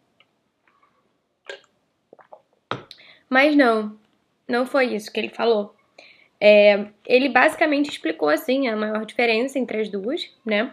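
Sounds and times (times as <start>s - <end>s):
person drinking water: 1.5s - 3.0s
speech: 3.3s - 5.8s, 6.4s - 10.7s.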